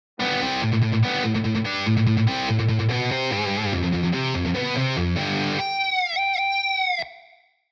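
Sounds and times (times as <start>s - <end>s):
guitar pattern: 0.2s - 7.4s.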